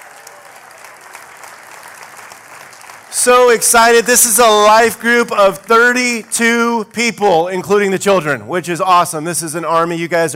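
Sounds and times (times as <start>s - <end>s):
audience applause: 0.0s - 6.8s
speech: 3.1s - 10.3s.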